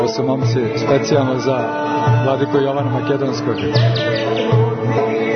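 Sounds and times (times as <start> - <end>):
speech: 0.1 - 5.2
monk from Draganac monastery imitating a bird call: 3.5 - 4.6.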